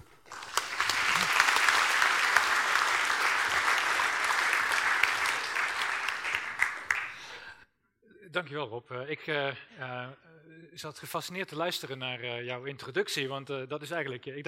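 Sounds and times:
audience applause: 0.0 - 7.5
speech: 8.4 - 14.4.

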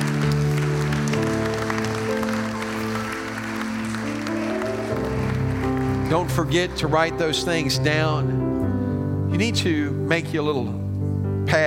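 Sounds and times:
audience applauding: 0.0 - 7.7
speech: 6.1 - 8.5, 9.3 - 10.8, 11.5 - 11.6.

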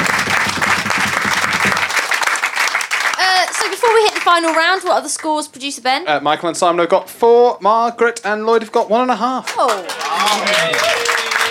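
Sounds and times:
audience applause: 0.0 - 4.7, 9.5 - 11.4
speech: 4.2 - 11.2.

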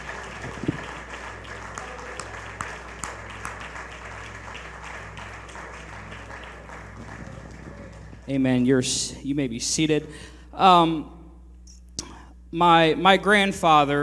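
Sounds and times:
audience clapping hands: 0.0 - 8.7
speech: 8.3 - 11.2, 12.5 - 14.0.

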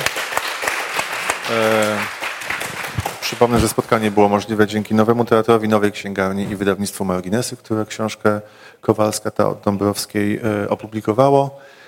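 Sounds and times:
audience applause: 0.0 - 4.2
speech: 1.5 - 2.2, 3.3 - 11.8.

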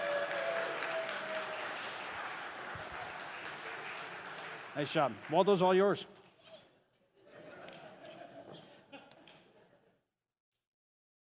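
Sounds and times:
audience applause: 0.0 - 6.0
speech: 4.8 - 6.2
laughter: 7.2 - 10.0.

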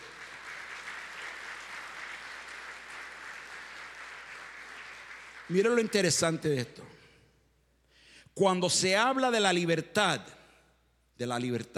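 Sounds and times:
audience applause: 0.0 - 6.0
speech: 5.5 - 7.0, 8.4 - 10.4, 11.2 - 11.7.

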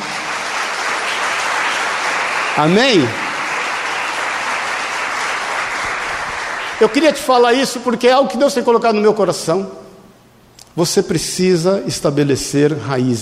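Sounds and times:
audience applauding: 0.0 - 7.5
speech: 2.6 - 3.2, 6.8 - 9.8, 10.8 - 13.2.

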